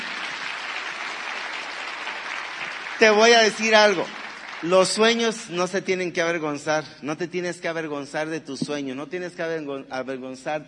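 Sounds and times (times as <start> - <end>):
audience applause: 0.0 - 5.8
speech: 3.0 - 10.6.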